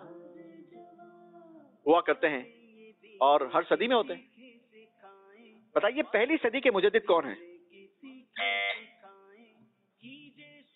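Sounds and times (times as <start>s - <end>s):
speech: 1.8s - 2.6s, 3.2s - 4.3s, 5.8s - 7.5s
quiz buzzer: 8.4s - 8.9s.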